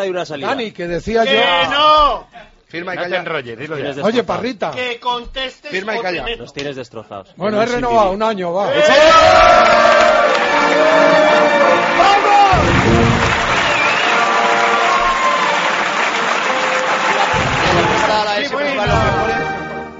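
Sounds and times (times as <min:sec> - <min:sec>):
speech: 0:00.0 - 0:13.4
cheering and applause: 0:08.7 - 0:19.4.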